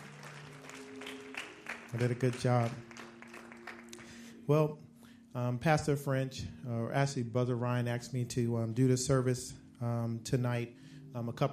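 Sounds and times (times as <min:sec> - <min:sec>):
audience applause: 0:00.0 - 0:04.3
speech: 0:01.9 - 0:02.9, 0:04.5 - 0:11.5.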